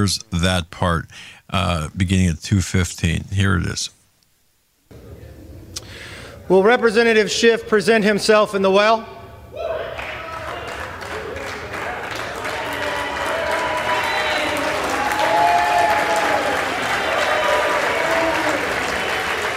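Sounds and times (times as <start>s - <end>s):
speech: 0.0s - 4.0s, 6.5s - 9.2s
audience clapping in a legislative chamber: 10.0s - 19.5s.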